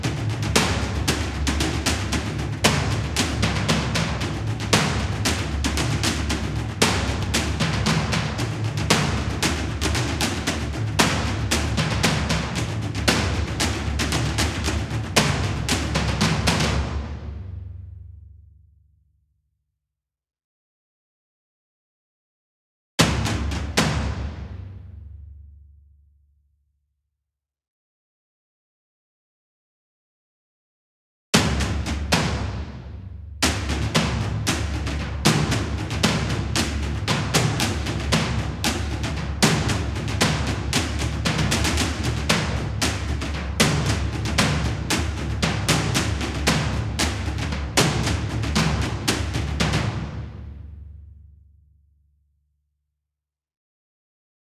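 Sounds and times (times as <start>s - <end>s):
instrumental tom drums: 0.0s - 18.2s, 23.0s - 25.2s, 31.4s - 51.3s.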